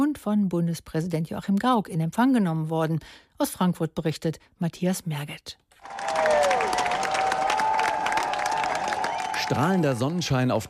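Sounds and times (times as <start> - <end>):
speech: 0.2 - 6.2, 9.5 - 10.6
thousands of fans cheering and applauding: 5.8 - 10.6
whistles: 8.8 - 9.6.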